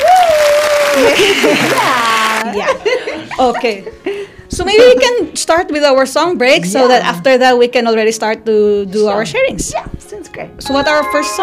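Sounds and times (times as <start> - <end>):
applause sound effect: 0.0 - 2.6
laughter: 0.8 - 4.2
speech: 1.0 - 11.4.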